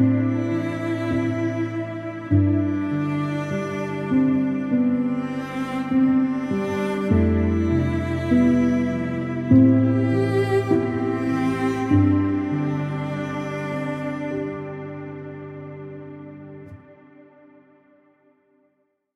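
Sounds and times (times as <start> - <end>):
sad instrumental piano music: 0.0 - 17.8.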